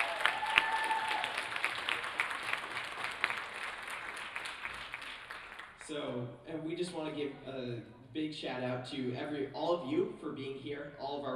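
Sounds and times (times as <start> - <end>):
audience applause: 0.0 - 6.0
speech: 5.9 - 11.3.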